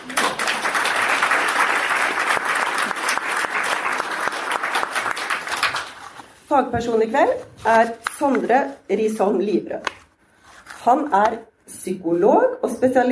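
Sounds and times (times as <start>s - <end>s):
audience applause: 0.0s - 6.2s
speech: 6.5s - 10.0s, 10.8s - 13.1s.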